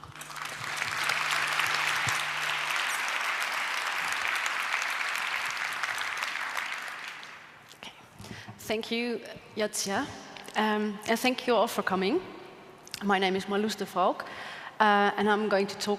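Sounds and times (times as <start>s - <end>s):
audience applause: 0.0s - 7.6s
speech: 8.7s - 12.4s, 13.0s - 15.9s.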